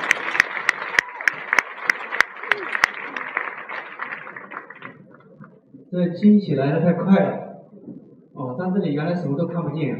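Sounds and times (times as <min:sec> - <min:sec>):
audience applause: 0:00.0 - 0:05.5
speech: 0:05.9 - 0:07.5, 0:08.6 - 0:09.9.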